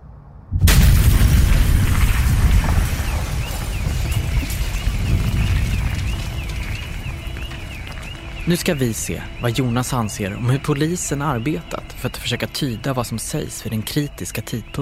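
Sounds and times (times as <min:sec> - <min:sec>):
reconstructed bomb explosion sound effect: 0:00.5 - 0:08.4
speech: 0:08.5 - 0:14.8.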